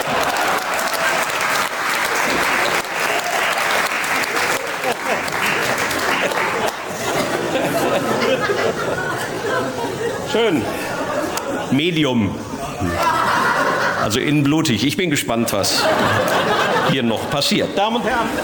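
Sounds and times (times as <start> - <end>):
crowd chatter: 0.0 - 1.4, 2.0 - 14.4, 15.4 - 18.4
audience clapping loudly: 0.0 - 8.6
laughter: 0.0 - 18.4
speech: 10.4 - 10.8, 11.7 - 13.2, 14.0 - 18.4.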